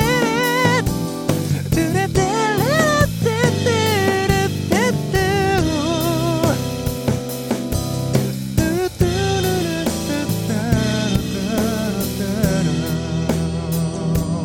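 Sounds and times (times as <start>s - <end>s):
rock music: 0.0s - 14.4s.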